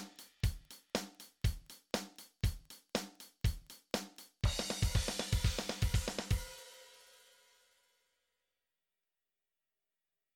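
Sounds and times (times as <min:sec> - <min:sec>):
drum kit fill: 0:00.0 - 0:07.6.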